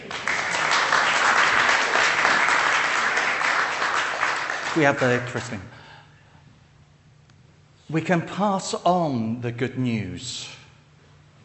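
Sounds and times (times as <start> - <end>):
clapping: 0.0 - 5.5
speech: 4.8 - 5.8, 7.9 - 10.6.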